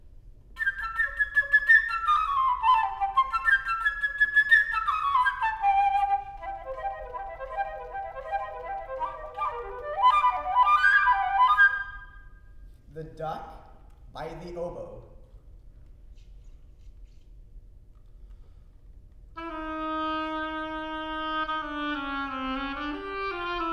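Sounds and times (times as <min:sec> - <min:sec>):
flute playing a melody: 0:00.6 - 0:12.4, 0:19.4 - 0:23.7
speech: 0:14.4 - 0:15.0.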